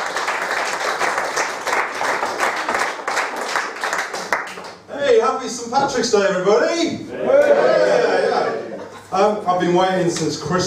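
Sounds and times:
comedy audience clapping at a St. Patrick's Day show: 0:00.0 - 0:04.9
speech: 0:05.5 - 0:07.8, 0:09.1 - 0:10.6
laughter: 0:07.2 - 0:09.1.

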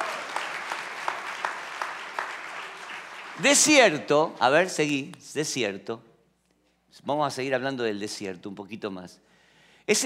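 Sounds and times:
audience applauding: 0:00.0 - 0:04.6
speech: 0:03.4 - 0:06.1, 0:06.9 - 0:09.3, 0:09.9 - 0:10.0.

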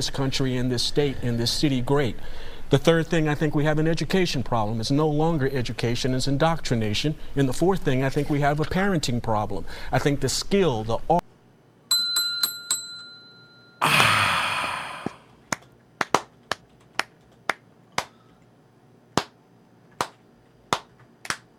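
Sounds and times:
speech: 0:00.0 - 0:11.2
bright bell-like chimes: 0:11.9 - 0:13.8
slow hand claps: 0:15.0 - 0:18.2, 0:19.2 - 0:21.5.

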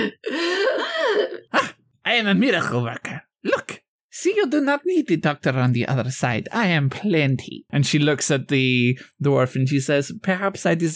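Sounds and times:
voice imitating a giant gasp for air: 0:00.0 - 0:01.8
speech: 0:02.1 - 0:03.6, 0:04.2 - 0:10.9.

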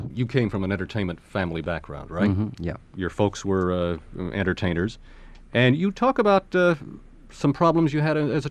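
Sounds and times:
speech: 0:00.2 - 0:08.4
voice imitating a boat: 0:02.2 - 0:02.7.

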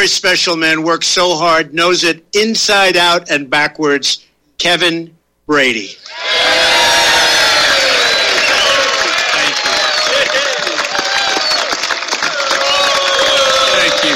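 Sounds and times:
speech: 0:00.0 - 0:06.4
large crowd cheering and whooping: 0:06.0 - 0:14.1.

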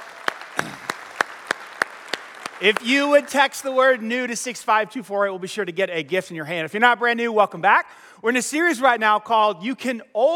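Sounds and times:
audience clapping: 0:00.0 - 0:04.1
speech: 0:02.6 - 0:10.3.

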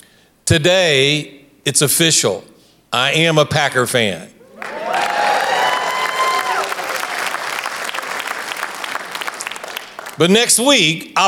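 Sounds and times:
speech: 0:00.5 - 0:04.4, 0:10.2 - 0:11.2
crowd cheering: 0:04.4 - 0:10.2
audience applause: 0:04.4 - 0:10.3.

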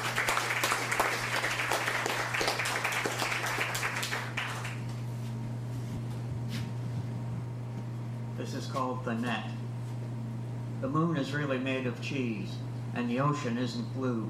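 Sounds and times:
audience applause for a performer: 0:00.0 - 0:04.8
low steady hum: 0:00.0 - 0:14.2
speech: 0:08.5 - 0:09.6, 0:10.8 - 0:14.2.

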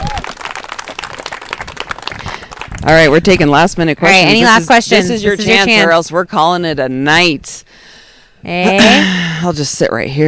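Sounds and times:
crowd applauding: 0:00.0 - 0:02.9
speech: 0:02.8 - 0:07.7, 0:08.4 - 0:10.2.

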